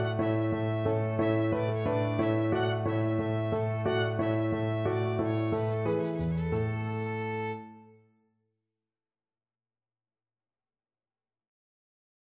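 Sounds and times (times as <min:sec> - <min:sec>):
violin: 0:00.0 - 0:08.0.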